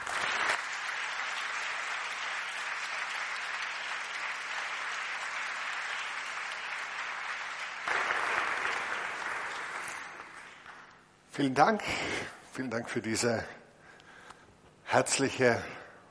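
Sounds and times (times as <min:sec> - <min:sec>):
welcoming applause from audience: 0:00.0 - 0:11.0
speech: 0:11.4 - 0:13.6, 0:14.9 - 0:15.8.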